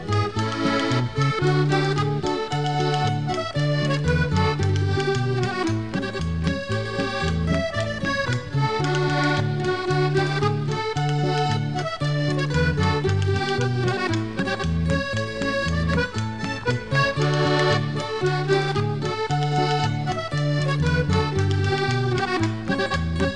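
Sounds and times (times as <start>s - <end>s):
polka music: 0.0s - 23.3s.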